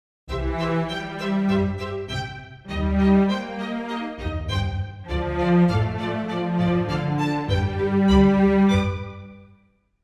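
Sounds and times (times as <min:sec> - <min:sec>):
string section with leader: 0:00.3 - 0:09.5.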